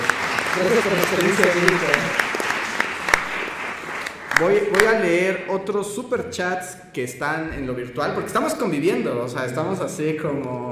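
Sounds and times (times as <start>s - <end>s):
applause: 0.0s - 5.2s
speech: 0.6s - 2.2s, 4.4s - 10.6s.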